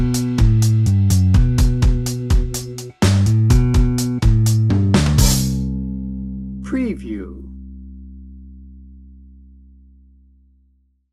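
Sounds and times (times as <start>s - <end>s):
americana soft rock music: 0.0s - 7.5s.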